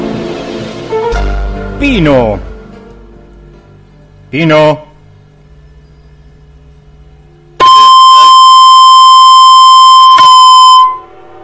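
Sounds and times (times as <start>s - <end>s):
speech: 1.8s - 2.5s, 4.3s - 4.9s
whistle: 7.6s - 11.2s.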